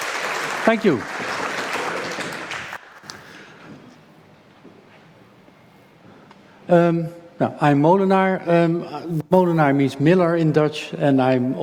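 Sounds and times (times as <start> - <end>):
audience applause: 0.0 - 3.1
speech: 0.7 - 1.2, 6.7 - 11.6.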